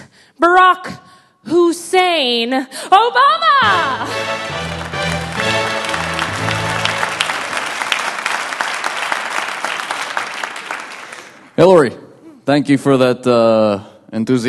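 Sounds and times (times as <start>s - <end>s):
speech: 0.4s - 4.7s, 11.6s - 14.4s
audience applause and cheering greeting Barack Obama: 3.6s - 11.6s.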